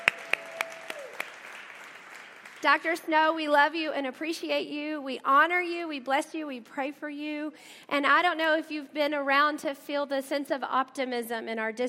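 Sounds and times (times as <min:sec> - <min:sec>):
audience applause for honored guest: 0:00.0 - 0:02.7
speech: 0:02.6 - 0:11.8.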